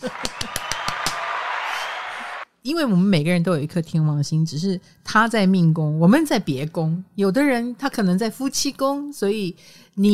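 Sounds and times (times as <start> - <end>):
applause: 0.0 - 2.4
speech: 2.6 - 10.1.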